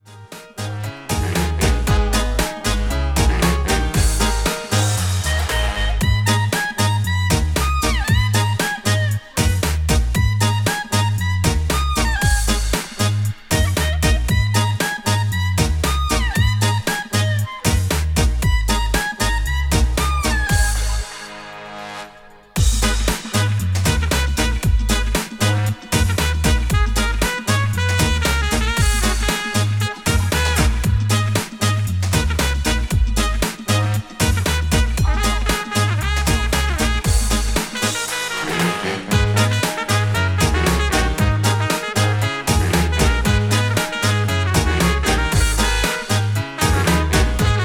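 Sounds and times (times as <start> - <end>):
dub music: 0.0 - 47.6.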